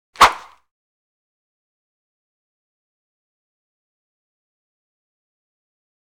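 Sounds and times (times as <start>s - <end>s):
single swish: 0.2s - 0.6s.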